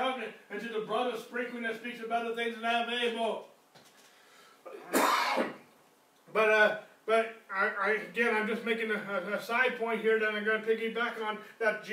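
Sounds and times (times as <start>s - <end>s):
speech: 0.3s - 3.5s, 6.3s - 11.9s
person clearing throat during a sermon: 4.7s - 5.7s.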